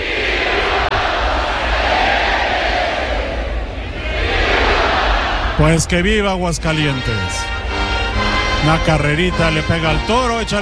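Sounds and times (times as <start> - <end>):
bullring crowd shouting in a roar: 0.0 - 5.8
speech: 5.6 - 7.5, 8.6 - 10.5.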